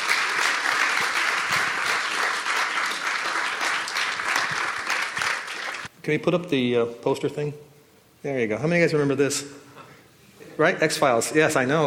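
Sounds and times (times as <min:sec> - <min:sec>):
crowd applauding: 0:00.0 - 0:05.9
speech: 0:06.1 - 0:09.6, 0:10.6 - 0:11.8.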